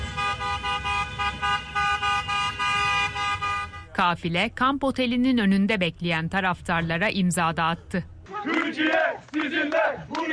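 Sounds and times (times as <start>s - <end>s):
car horns honking from a fans' convoy in Los Angeles: 0.0s - 4.0s
low rumble of traffic: 0.0s - 10.3s
speech: 4.0s - 10.3s.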